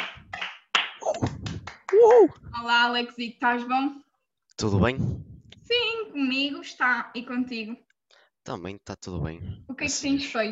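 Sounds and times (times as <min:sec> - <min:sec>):
people clapping: 0:00.0 - 0:02.3
speech: 0:02.0 - 0:04.0, 0:04.6 - 0:07.8, 0:08.5 - 0:10.5.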